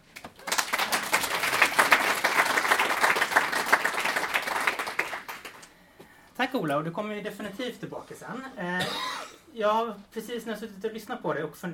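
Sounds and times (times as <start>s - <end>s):
audience applause: 0.2s - 5.7s
speech: 6.5s - 11.7s.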